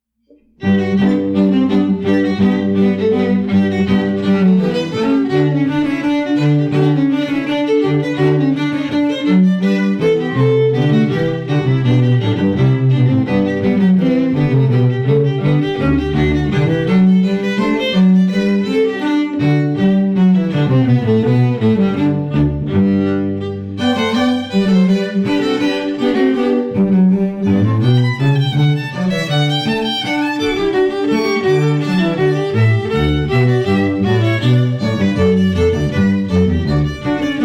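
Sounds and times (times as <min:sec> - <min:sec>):
strings: 0:00.3 - 0:37.4.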